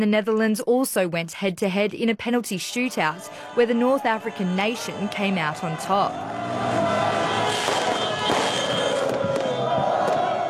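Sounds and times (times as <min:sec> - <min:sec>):
speech: 0:00.0 - 0:06.5
dense crowd din: 0:02.7 - 0:10.4
fireworks cracking and popping: 0:07.5 - 0:10.3.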